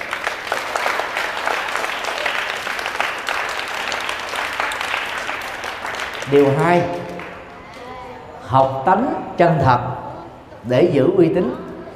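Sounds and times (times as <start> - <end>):
audience applause: 0.0 - 7.8
speech: 6.3 - 7.0, 8.5 - 10.0, 10.6 - 11.7.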